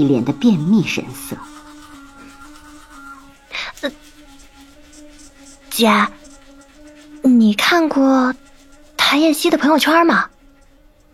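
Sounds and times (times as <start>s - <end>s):
speech: 0.0s - 1.5s, 3.8s - 4.0s, 5.8s - 6.2s, 7.2s - 8.4s, 9.1s - 10.3s
man brushing his teeth with an electric toothbrush: 0.0s - 11.1s.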